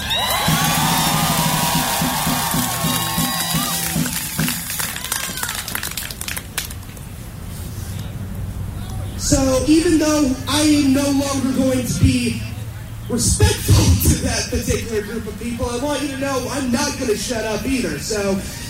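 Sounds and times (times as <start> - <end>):
large crowd screaming: 0.0 - 6.2
speech: 9.7 - 12.5, 13.1 - 18.6.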